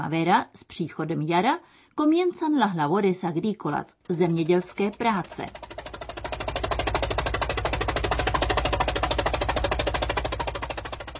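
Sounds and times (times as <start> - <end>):
speech: 0.0 - 5.8
tractor engine chugging in the field: 4.1 - 11.1.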